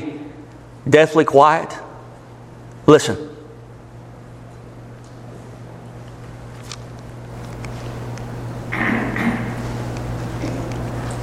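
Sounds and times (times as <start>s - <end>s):
speech: 0.8s - 1.8s, 2.9s - 3.3s
throat clearing: 8.7s - 9.6s, 10.4s - 10.7s.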